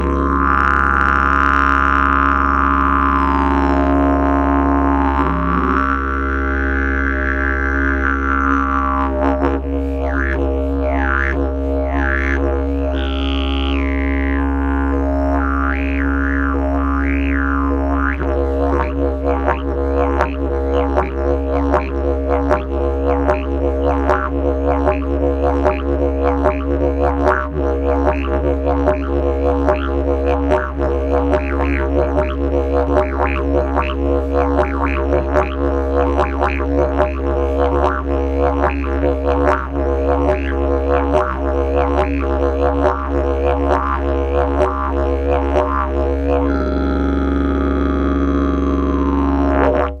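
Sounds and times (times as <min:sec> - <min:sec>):
didgeridoo: 0:00.0 - 0:49.9.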